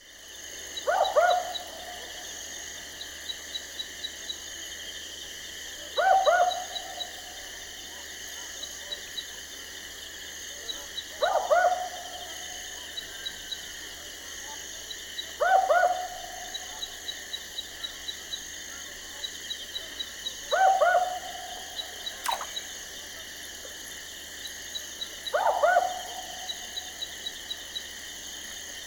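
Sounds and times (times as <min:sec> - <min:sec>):
Barking owl Ninox connivens double bark: 0:00.8 - 0:02.1, 0:06.0 - 0:07.1, 0:11.2 - 0:12.0, 0:15.4 - 0:16.4, 0:20.5 - 0:22.6, 0:25.3 - 0:26.6.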